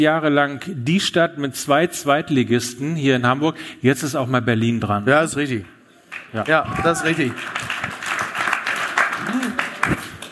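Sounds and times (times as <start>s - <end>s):
speech: 0.0s - 7.8s
restrained audience applause: 6.1s - 10.3s.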